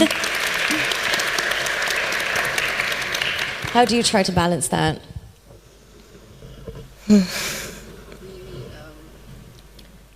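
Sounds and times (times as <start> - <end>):
crowd clapping: 0.0 - 4.5
speech: 3.7 - 5.1, 7.1 - 7.5.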